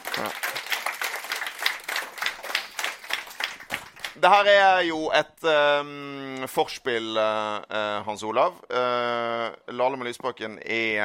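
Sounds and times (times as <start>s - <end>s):
audience applause: 0.0s - 4.3s
speech: 0.2s - 0.5s, 4.2s - 11.0s.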